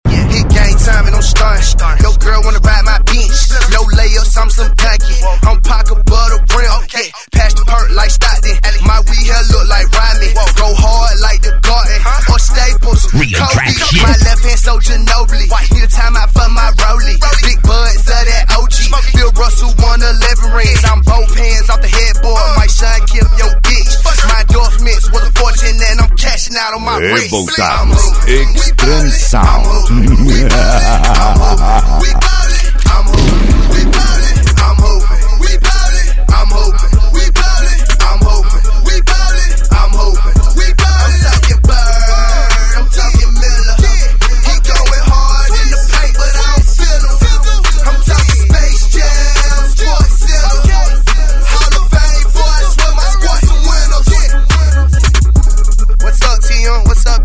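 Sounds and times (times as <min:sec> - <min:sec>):
hip hop beat: 0:00.0 - 0:57.2
laughter: 0:13.3 - 0:14.3, 0:28.8 - 0:32.7.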